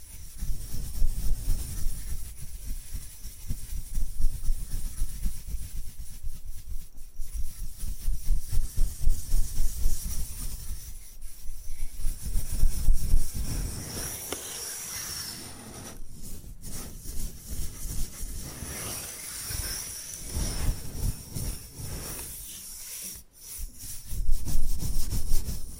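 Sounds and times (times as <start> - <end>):
bamboo being scratched and brushed: 0.0 - 25.7.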